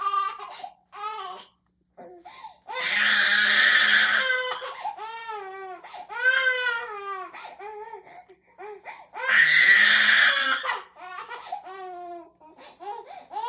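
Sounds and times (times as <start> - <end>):
twelve month old baby girl crying and screaming: 2.7 - 8.0, 8.6 - 12.2.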